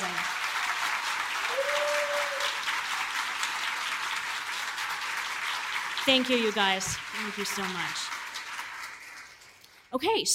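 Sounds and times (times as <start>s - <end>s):
audience applause: 0.0s - 9.6s
speech: 6.1s - 8.2s, 9.9s - 10.3s.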